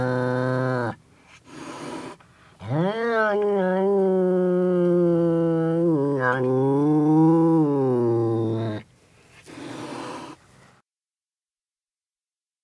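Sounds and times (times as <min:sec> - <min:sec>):
wild cat growling: 0:00.0 - 0:08.8
wild cat hissing: 0:01.3 - 0:02.7, 0:09.4 - 0:10.4.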